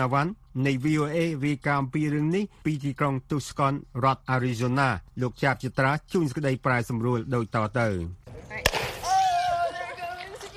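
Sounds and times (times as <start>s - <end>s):
speech: 0.0s - 8.2s
pop from a sealed tablet and water rocket-launch experiment: 8.6s - 9.2s.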